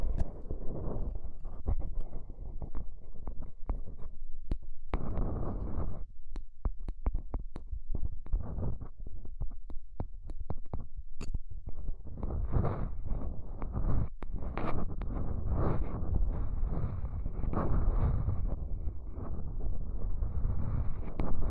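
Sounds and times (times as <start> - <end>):
ear cleaning rubbing and scraping with rhinestone and clay removal: 0.0 - 21.4
quick sharp clicks and crackles: 0.0 - 21.4.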